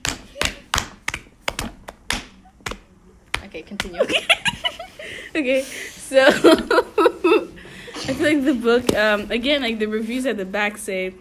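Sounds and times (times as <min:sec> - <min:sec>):
hand clapping: 0:00.0 - 0:04.1
speech: 0:03.6 - 0:07.1, 0:08.2 - 0:11.1
laughter: 0:04.0 - 0:08.5.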